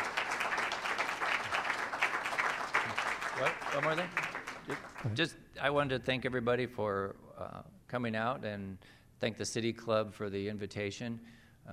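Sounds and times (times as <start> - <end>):
audience applause for a guest speaker: 0.0 - 5.2
speech: 3.4 - 11.7.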